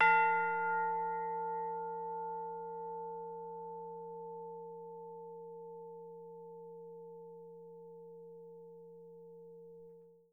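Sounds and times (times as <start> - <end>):
harp: 0.0 - 4.2
percussion: 0.0 - 10.1.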